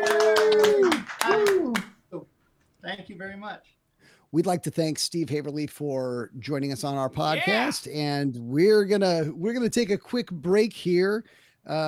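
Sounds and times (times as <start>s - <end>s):
round of applause: 0.0s - 2.0s
speech: 3.2s - 11.8s.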